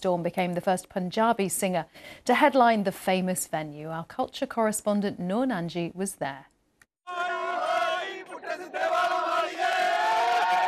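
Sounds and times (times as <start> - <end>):
speech: 0.0 - 6.5
stadium crowd of fans cheering and chanting: 7.1 - 10.6.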